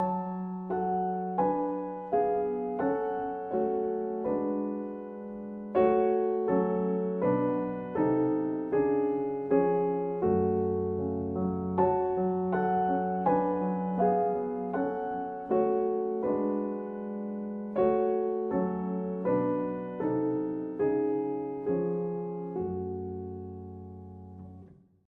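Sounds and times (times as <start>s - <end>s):
solo piano: 0.0s - 25.0s.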